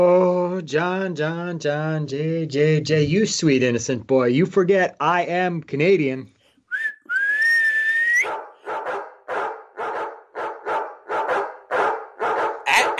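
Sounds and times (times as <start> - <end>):
speech: 0.0 - 6.4
rising whistle: 6.7 - 8.3
pack of sled dogs barking: 8.2 - 12.9.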